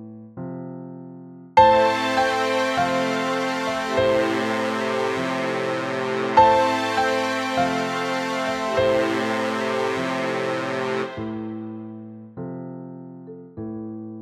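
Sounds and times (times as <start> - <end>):
classical funeral march: 1.6 - 11.7.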